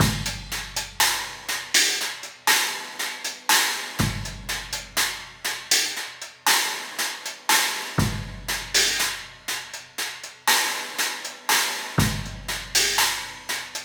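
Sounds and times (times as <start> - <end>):
kick drum: 0.0 - 1.2, 4.0 - 5.0, 8.0 - 8.7, 12.0 - 12.8
cymbal: 0.0 - 13.8.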